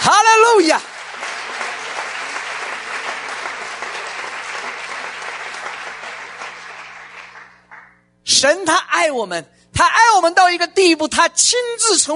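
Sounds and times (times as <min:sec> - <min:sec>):
audience clapping: 0:00.0 - 0:08.1
speech: 0:08.4 - 0:12.1.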